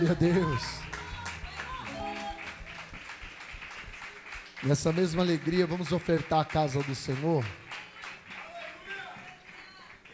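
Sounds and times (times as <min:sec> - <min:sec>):
speech: 0:00.0 - 0:00.9, 0:04.6 - 0:07.6
sustained voice or instrument tone: 0:00.0 - 0:03.1
audience applauding: 0:00.0 - 0:10.1.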